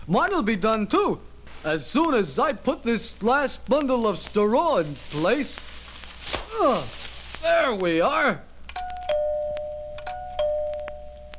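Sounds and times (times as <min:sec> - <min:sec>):
speech: 0:00.1 - 0:08.5
doorbell ringing: 0:08.8 - 0:11.3.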